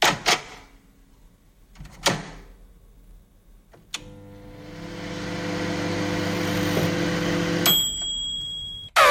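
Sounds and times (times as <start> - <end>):
microwave oven running: 4.0 - 8.6.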